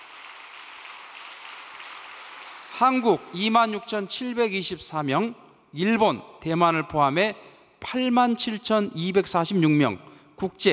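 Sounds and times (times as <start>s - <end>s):
audience applause: 0.0s - 2.9s
speech: 2.8s - 10.7s.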